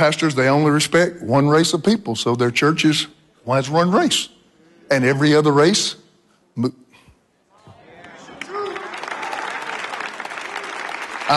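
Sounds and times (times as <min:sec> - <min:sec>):
speech: 0:00.0 - 0:06.0, 0:06.6 - 0:06.8
light scattered polite clapping from a small crowd: 0:08.0 - 0:11.3.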